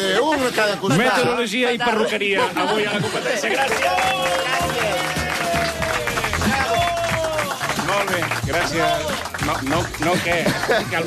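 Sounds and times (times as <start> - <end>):
laughter: 0.0 - 11.0
speech: 0.2 - 5.2, 7.9 - 11.0
audience clapping at a competition show: 2.6 - 11.0
audience shouting bravo at a competition show: 3.4 - 9.4.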